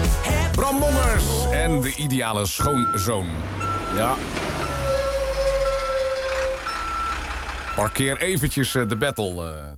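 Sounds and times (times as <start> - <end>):
speech: 0.6 - 4.5, 7.8 - 9.7
truck reversing: 2.5 - 9.7.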